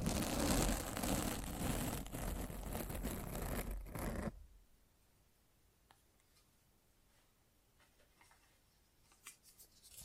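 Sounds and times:
microphone scratching: 0.0s - 4.4s.

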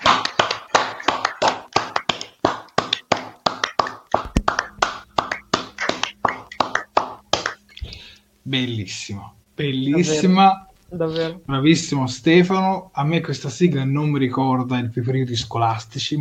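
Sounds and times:
applause: 0.0s - 7.6s
speech: 8.5s - 16.2s.

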